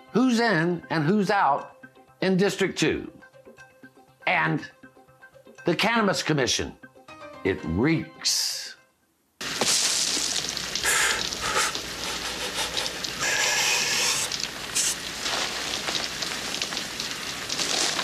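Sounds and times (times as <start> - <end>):
speech: 0.3 - 3.2, 4.3 - 4.8, 5.6 - 6.8, 7.4 - 8.8
crackling campfire: 9.4 - 18.0.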